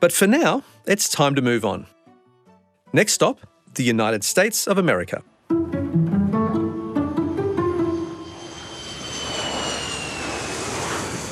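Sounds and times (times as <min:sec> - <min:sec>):
speech: 0:00.0 - 0:02.0, 0:02.9 - 0:05.3
airplane flying before landing: 0:05.5 - 0:11.2.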